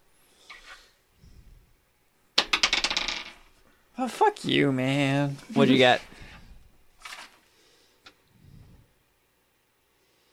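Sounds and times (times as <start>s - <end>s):
dice clattering across a hard surface: 2.4s - 3.5s
speech: 4.0s - 6.1s
soft rustling and handling sounds: 5.3s - 7.5s.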